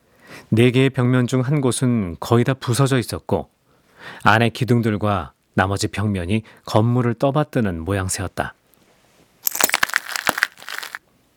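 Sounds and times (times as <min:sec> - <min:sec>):
speech: 0:00.5 - 0:08.6
footsteps crunching over broken light bulb glass in a half-basement of a ruined house: 0:09.4 - 0:11.0.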